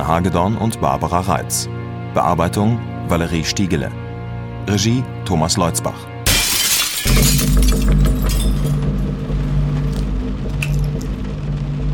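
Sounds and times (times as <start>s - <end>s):
speech: 0.0s - 4.0s, 4.7s - 6.1s
window pane being smashed: 6.3s - 8.8s
steady low droning hum: 6.3s - 11.9s.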